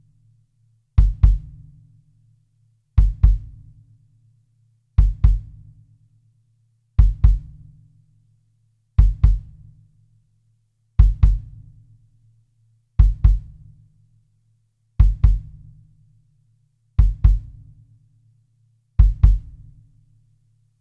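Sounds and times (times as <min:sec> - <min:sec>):
kick drum: 0:01.0 - 0:02.0, 0:03.0 - 0:03.8, 0:05.0 - 0:05.9, 0:07.0 - 0:07.9, 0:09.0 - 0:09.9, 0:11.0 - 0:11.9, 0:13.0 - 0:13.9, 0:15.0 - 0:16.1, 0:17.0 - 0:17.9, 0:19.0 - 0:19.9.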